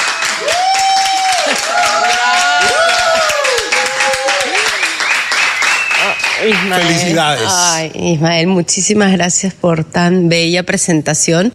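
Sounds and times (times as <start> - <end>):
audience applause: 0.0 - 7.7
speech: 6.4 - 11.5.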